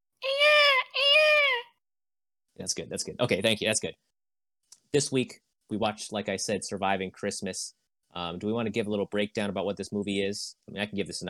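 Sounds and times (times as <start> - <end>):
person imitating bird-of-paradise calls: 0.2 - 1.7
speech: 2.6 - 4.1, 4.9 - 11.2.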